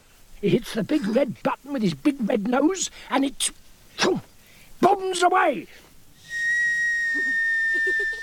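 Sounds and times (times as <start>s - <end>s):
speech: 0.4s - 4.3s, 5.0s - 5.8s
kettle whistling as it boils: 6.2s - 8.2s.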